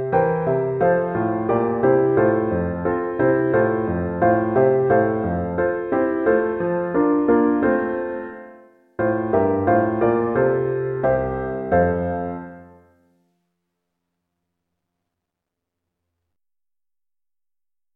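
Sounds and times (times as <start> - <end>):
piano piece: 0.0 - 13.3.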